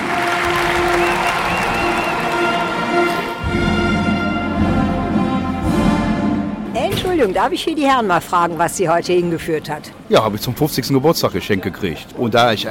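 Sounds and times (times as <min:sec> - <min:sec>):
crowd applause and cheering at a German military tattoo: 0:00.0 - 0:05.9
speech: 0:07.2 - 0:12.6.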